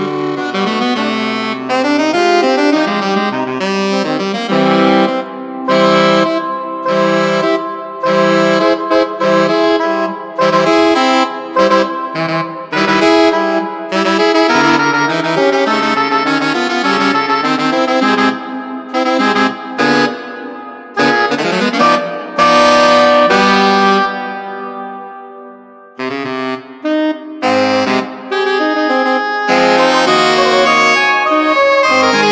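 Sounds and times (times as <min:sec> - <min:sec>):
MIDI saxophone: 0:00.0 - 0:32.3.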